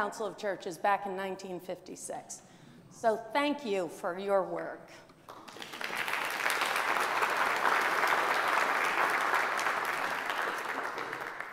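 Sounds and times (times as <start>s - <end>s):
speech: 0.0s - 5.6s
audience applauding: 5.3s - 11.5s.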